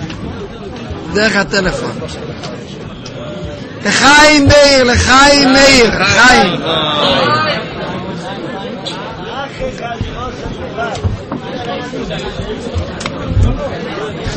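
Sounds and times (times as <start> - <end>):
crowd chatter in the room: 0.0 - 14.3
speech: 1.1 - 2.9, 3.8 - 7.6
loud bumps: 3.5 - 6.0, 9.6 - 14.3.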